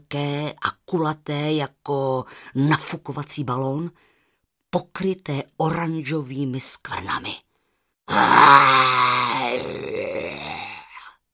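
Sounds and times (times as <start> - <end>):
speech: 0.1 - 4.1, 4.7 - 7.4, 8.1 - 9.9
voice imitating a monster roar: 8.1 - 11.2.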